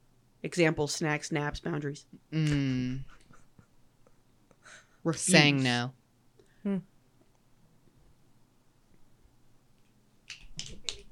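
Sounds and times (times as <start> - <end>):
speech: 0.4 - 3.2, 5.0 - 6.0, 6.6 - 6.9
audience finger snapping: 10.3 - 11.1.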